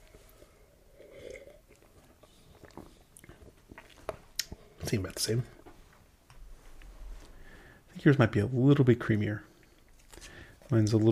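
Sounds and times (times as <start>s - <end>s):
person sipping a drink: 0.0s - 4.8s
speech: 4.8s - 5.6s, 8.0s - 9.5s, 10.7s - 11.1s.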